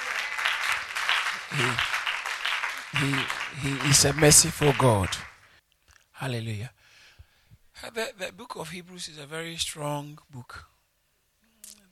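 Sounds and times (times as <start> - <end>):
audience applause: 0.0 - 5.6
speech: 1.5 - 1.9, 2.9 - 5.3, 6.2 - 6.8, 7.8 - 10.7.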